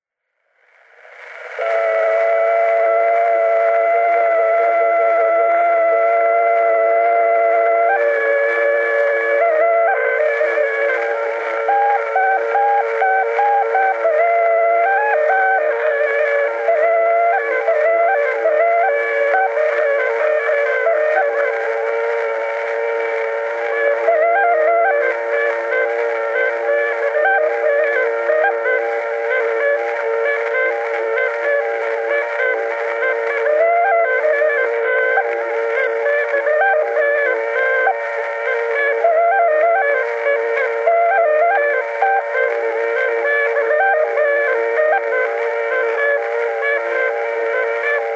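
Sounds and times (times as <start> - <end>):
torupill bagpipe playing a folk tune in Emmaste: 0.8 - 48.1.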